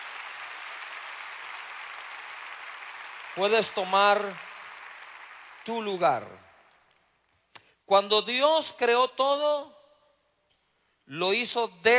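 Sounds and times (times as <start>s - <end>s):
audience applause: 0.0s - 6.5s
speech: 3.4s - 4.4s, 5.6s - 6.5s, 7.9s - 9.8s, 11.1s - 11.9s.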